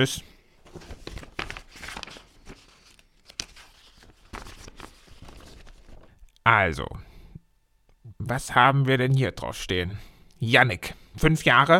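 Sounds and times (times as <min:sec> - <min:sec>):
speech: 0:00.0 - 0:00.9, 0:06.5 - 0:07.0, 0:08.3 - 0:11.7
paper Christmas wish lists grabbed and sorted: 0:00.6 - 0:06.2.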